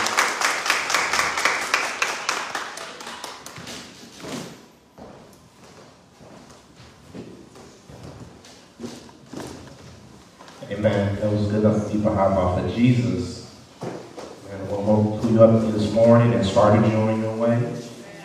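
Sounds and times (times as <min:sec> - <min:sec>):
audience clapping hands: 0:00.0 - 0:04.0
speech: 0:10.8 - 0:13.4, 0:15.0 - 0:17.8.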